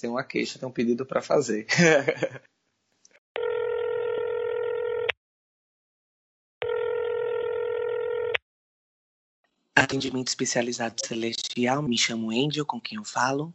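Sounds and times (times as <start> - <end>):
speech: 0.0 - 2.5, 9.8 - 13.5
laughter: 1.7 - 2.4
telephone ringing tones: 3.4 - 5.1, 6.6 - 8.4.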